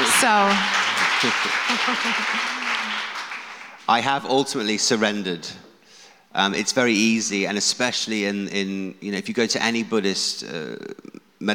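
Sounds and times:
laughter: 0:00.0 - 0:03.5
a couple of people clapping: 0:00.0 - 0:04.2
speech: 0:00.2 - 0:02.6, 0:03.9 - 0:05.7, 0:06.3 - 0:11.5.

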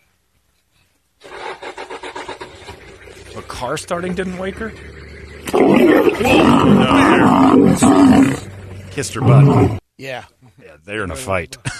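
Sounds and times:
speech: 0:03.4 - 0:04.9, 0:05.5 - 0:08.4, 0:09.0 - 0:11.7
lion roaring: 0:04.8 - 0:09.8.

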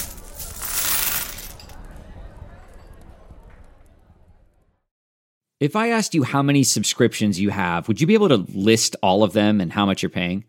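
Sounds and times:
coins tossed across a table: 0:00.0 - 0:01.8
speech: 0:05.6 - 0:10.4.

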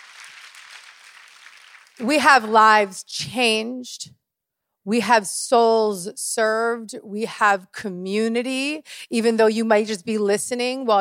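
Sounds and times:
live audience applause: 0:00.0 - 0:02.5
speech: 0:02.0 - 0:04.2, 0:04.8 - 0:10.9.

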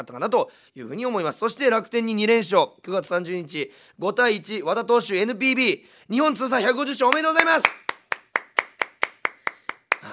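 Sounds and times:
speech: 0:00.0 - 0:07.8
staff hand clapping: 0:07.0 - 0:10.1.

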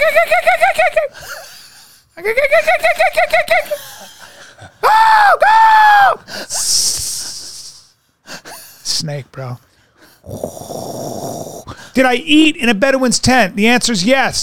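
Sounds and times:
laughter: 0:00.0 - 0:01.2, 0:02.2 - 0:04.8
speech: 0:00.1 - 0:01.3, 0:02.2 - 0:04.1, 0:04.9 - 0:07.0, 0:09.0 - 0:14.4
person imitating a jackal call: 0:10.3 - 0:11.7.

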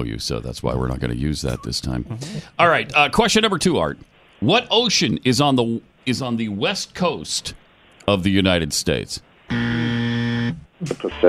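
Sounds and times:
speech: 0:00.0 - 0:09.9, 0:10.8 - 0:11.2
quiz buzzer: 0:09.5 - 0:10.6.

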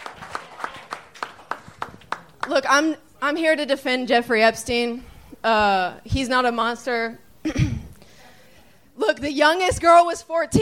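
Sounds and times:
audience clapping: 0:00.0 - 0:02.8
speech: 0:02.5 - 0:07.7, 0:09.2 - 0:10.5.

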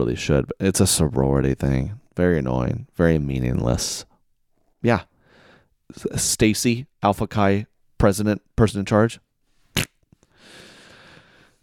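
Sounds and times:
speech: 0:00.0 - 0:04.1, 0:04.8 - 0:05.1, 0:05.9 - 0:09.2
mouth-made fart noise: 0:09.7 - 0:10.0
short sharp puff: 0:09.7 - 0:10.0.

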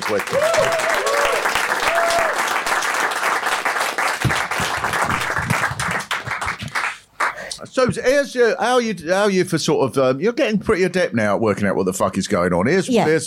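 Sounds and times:
audience round of applause: 0:00.0 - 0:07.5
speech: 0:00.1 - 0:01.1, 0:07.8 - 0:13.2.

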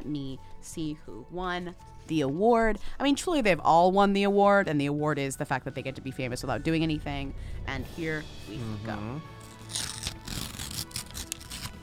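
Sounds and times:
speech: 0:00.1 - 0:10.0
paper tearing as a winner's envelope is ripped open at an awards presentation: 0:09.4 - 0:11.8.

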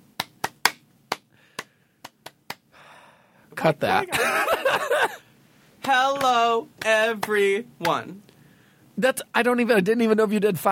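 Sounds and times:
hands clapping into a microphone: 0:00.1 - 0:02.7, 0:05.8 - 0:08.0
speech: 0:03.5 - 0:05.2, 0:05.8 - 0:08.2, 0:09.0 - 0:10.7
laughter: 0:04.0 - 0:05.2.

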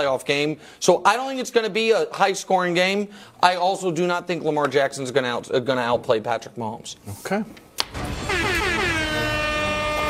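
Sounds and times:
speech: 0:00.0 - 0:08.4
siren sound effect: 0:08.1 - 0:10.0.

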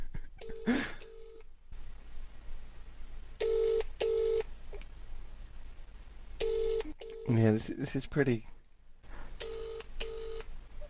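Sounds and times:
telephone ringing: 0:00.4 - 0:01.5, 0:03.4 - 0:04.4, 0:06.4 - 0:07.4, 0:09.4 - 0:10.5
speech: 0:07.4 - 0:08.6.

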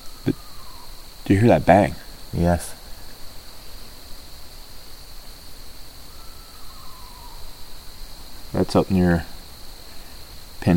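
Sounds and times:
faint owl call: 0:00.0 - 0:01.0, 0:06.0 - 0:07.6
constant hiss: 0:00.0 - 0:10.7
steady high-pitched insect drone: 0:00.0 - 0:10.7
speech: 0:01.3 - 0:02.8, 0:08.6 - 0:09.3.

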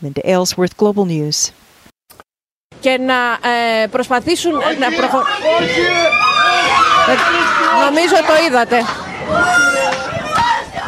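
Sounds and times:
speech: 0:00.0 - 0:01.6, 0:02.8 - 0:06.2, 0:07.1 - 0:09.7
residents of the island of Crete screaming in disbelief as stone bridge collapses: 0:04.3 - 0:10.8.

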